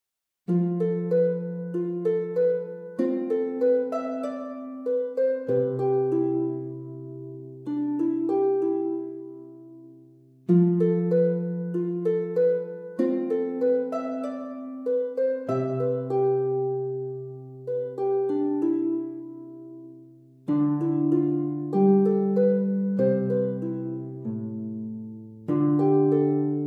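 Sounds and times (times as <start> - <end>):
easy harp arrangement: 0.5 - 26.6.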